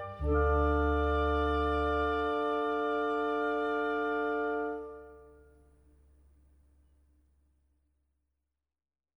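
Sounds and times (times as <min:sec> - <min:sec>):
instrumental music: 0:00.0 - 0:05.5.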